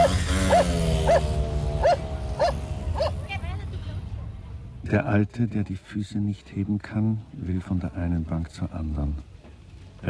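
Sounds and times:
dog barking: 0.0 - 3.2
speech: 4.9 - 9.3.

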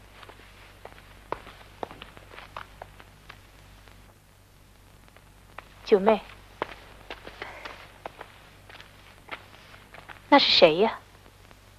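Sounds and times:
footsteps of someone walking away at night in a Chinese radio drama: 0.0 - 4.0, 5.1 - 10.6
low steady hum: 0.0 - 11.7
speech: 5.9 - 6.3, 10.3 - 11.0.

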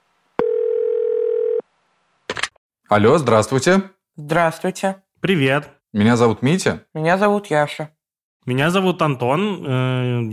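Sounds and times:
telephone dial tone while placing a call: 0.4 - 1.7
speech: 2.9 - 10.3.

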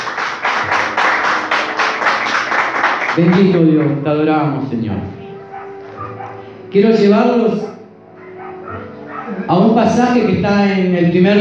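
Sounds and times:
church congregation clapping for the Lord during a worship service: 0.0 - 4.1
speech: 3.2 - 5.2, 6.7 - 7.7, 9.5 - 11.3.

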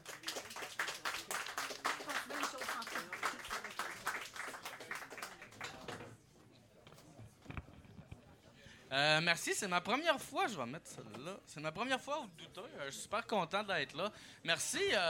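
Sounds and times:
audience applauding a comedian: 0.0 - 6.0
speech: 8.9 - 15.0.

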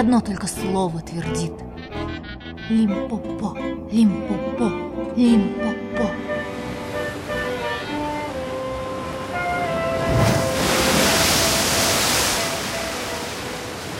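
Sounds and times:
speech: 0.0 - 6.4
sustained musical tones: 0.0 - 13.9
stormy sea waves roaring: 6.2 - 13.9.

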